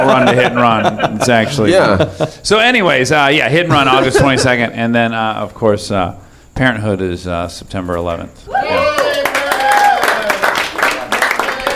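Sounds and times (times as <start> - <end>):
laughter: 0.0 - 2.4, 3.7 - 4.8
speech: 0.1 - 8.9
audience cheering and whooping: 8.6 - 10.3
audience clapping: 9.0 - 11.7.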